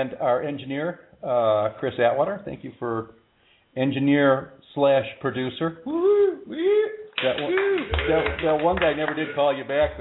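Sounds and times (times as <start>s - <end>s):
speech: 0.0s - 3.2s, 3.8s - 10.0s
canned applause from a sound-effect button: 7.2s - 10.0s.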